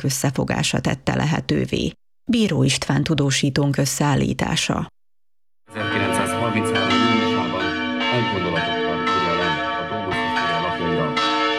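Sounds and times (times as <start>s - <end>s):
speech: 0.0s - 5.0s
church bell ringing: 5.7s - 11.5s.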